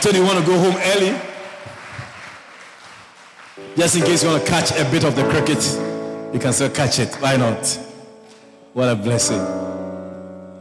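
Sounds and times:
speech: 0:00.0 - 0:01.3, 0:03.8 - 0:07.9, 0:08.8 - 0:09.8
audience clapping: 0:00.0 - 0:08.5.

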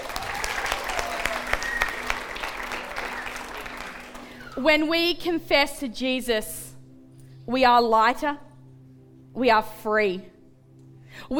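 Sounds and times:
audience applause: 0:00.0 - 0:04.6
speech: 0:04.6 - 0:06.6, 0:07.5 - 0:08.4, 0:09.4 - 0:10.3, 0:11.2 - 0:11.3.

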